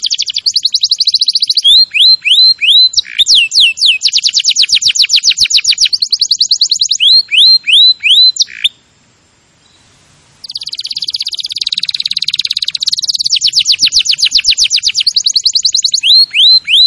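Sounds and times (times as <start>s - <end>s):
Canary singing trills and whistled notes: 0.0s - 8.9s, 9.6s - 16.8s.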